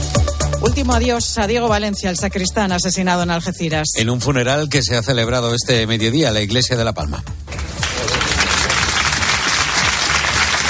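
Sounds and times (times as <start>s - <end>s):
speech: 0.8s - 7.7s
applause at a funeral: 7.5s - 10.6s.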